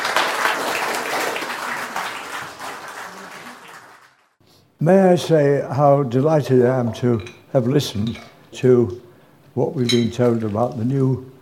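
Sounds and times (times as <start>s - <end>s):
audience applause welcoming a speaker: 0.0s - 4.4s
speech: 4.8s - 9.0s, 9.6s - 11.3s.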